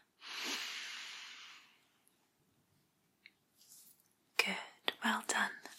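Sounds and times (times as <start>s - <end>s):
deep breath in through the right nostril during a cranial nerve exam: 0.2s - 1.8s
speech: 5.1s - 5.6s.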